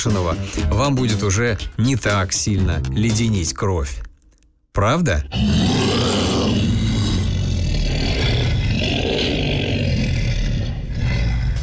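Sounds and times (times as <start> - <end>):
speech: 0.0 - 4.1, 4.8 - 6.2
announcer's voice growling a deep roar: 5.1 - 10.7.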